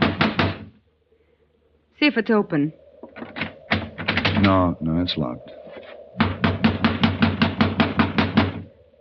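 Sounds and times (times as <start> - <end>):
heavy thudding knocks on a locked door: 0.0 - 0.7, 6.2 - 8.6
speech: 2.0 - 2.8, 4.4 - 5.6.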